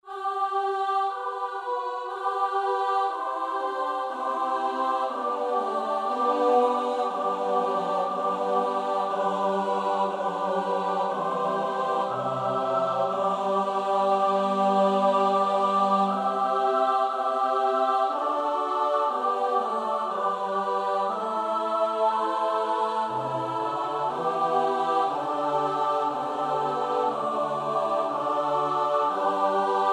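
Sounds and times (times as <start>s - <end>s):
SATB choir part practice: 0.0s - 29.9s.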